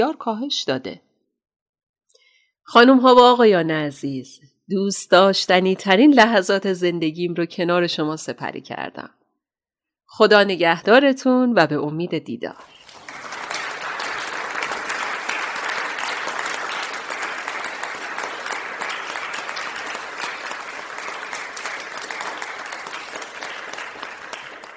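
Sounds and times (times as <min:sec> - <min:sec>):
speech: 0:00.0 - 0:01.1, 0:02.7 - 0:09.2, 0:10.1 - 0:12.8
large audience applause: 0:12.7 - 0:24.7.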